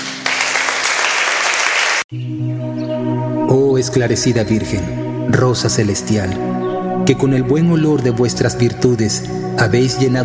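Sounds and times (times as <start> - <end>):
crowd clapping: 0.0 - 2.1
speech: 2.1 - 2.8, 3.8 - 10.2
sustained low musical tones: 2.1 - 10.2.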